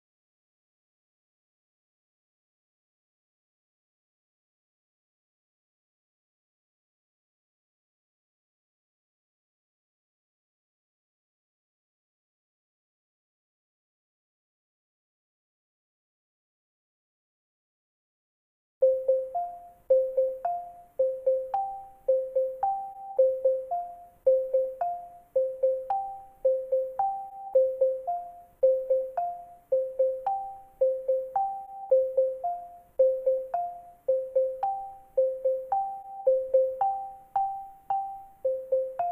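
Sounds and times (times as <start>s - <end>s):
xylophone: 18.8s - 39.0s.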